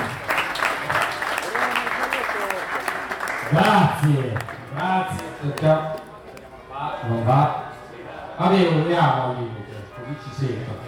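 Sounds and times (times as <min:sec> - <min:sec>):
audience applause: 0:00.0 - 0:05.4
speech: 0:03.5 - 0:06.0, 0:07.0 - 0:07.6, 0:08.4 - 0:10.8.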